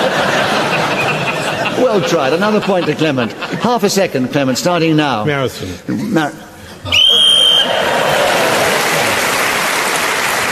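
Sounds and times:
laughter: 0.0 - 4.9, 5.9 - 10.4
speech: 1.9 - 7.0
referee's whistle blown: 6.9 - 7.8.

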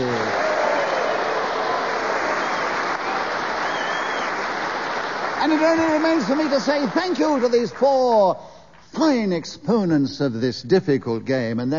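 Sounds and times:
audience applause: 0.0 - 8.3
speech: 5.4 - 11.7.

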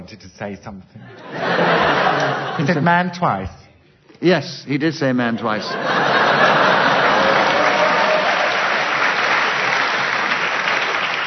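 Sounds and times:
speech: 0.1 - 3.6, 4.2 - 6.2
laughter: 1.0 - 3.2, 5.2 - 9.0
audience applause: 5.8 - 11.2.

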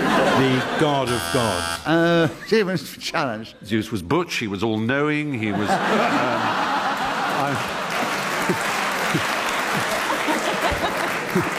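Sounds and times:
laughter: 0.0 - 2.7, 5.4 - 11.5
speech: 0.6 - 6.7, 7.4 - 7.8, 8.5 - 9.3
audience clapping: 6.2 - 11.5.

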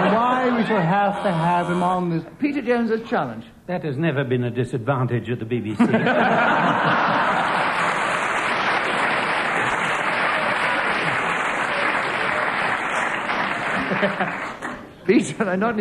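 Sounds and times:
laughter: 0.0 - 1.8, 5.8 - 14.6
speech: 0.6 - 7.5, 14.0 - 14.5, 15.1 - 15.7
studio audience applauding: 6.6 - 14.9.

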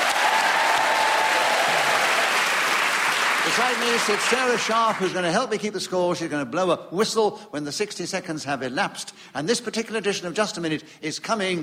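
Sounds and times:
studio audience applause: 0.0 - 5.2
speech: 3.5 - 11.6.

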